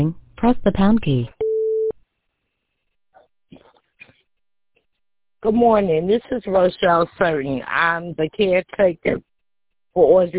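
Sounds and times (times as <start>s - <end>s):
speech: 0.0s - 1.4s, 5.4s - 9.3s, 10.0s - 10.3s
voicemail system recording beep: 1.4s - 2.0s.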